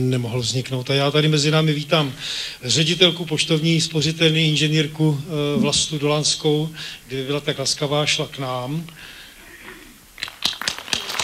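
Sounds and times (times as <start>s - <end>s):
speech: 0.0s - 9.2s
applause welcoming a savings-bank director at an award ceremony: 10.2s - 11.2s.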